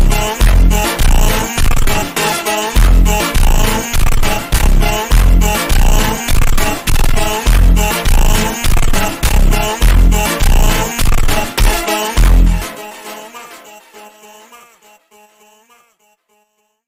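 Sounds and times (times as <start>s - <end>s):
montagem voices super slowed with reverb: 0.0s - 12.6s.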